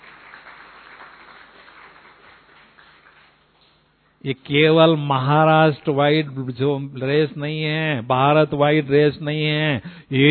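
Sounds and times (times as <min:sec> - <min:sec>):
audience clapping: 0:00.0 - 0:03.8
speech: 0:04.2 - 0:10.2.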